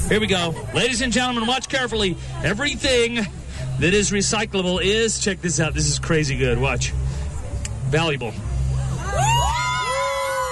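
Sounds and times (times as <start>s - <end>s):
speech: 0.1s - 7.2s, 7.9s - 8.5s
crowd cheering and screaming: 8.8s - 10.5s.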